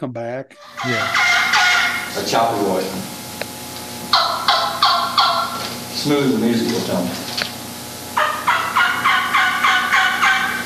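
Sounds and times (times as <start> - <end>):
speech: 0.0 - 3.2, 6.0 - 7.3
turkey yelping like an old gobbler: 0.6 - 2.6, 4.1 - 5.7, 8.2 - 10.6.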